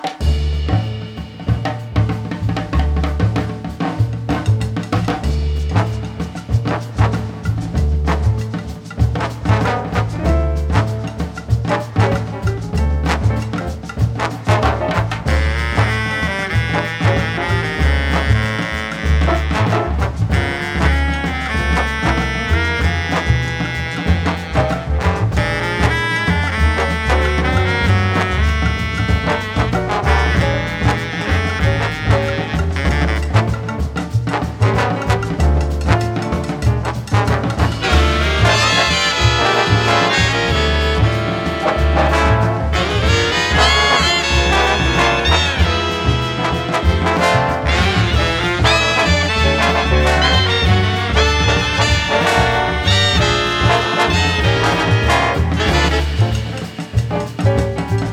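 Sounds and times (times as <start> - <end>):
gentle forest jazz: 0.0 - 58.1.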